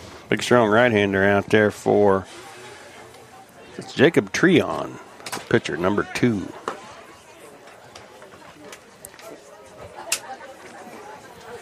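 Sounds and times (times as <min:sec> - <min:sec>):
spectators chattering as they arrive at a ballgame: 0:00.0 - 0:11.6
speech: 0:00.3 - 0:02.4, 0:03.8 - 0:06.6.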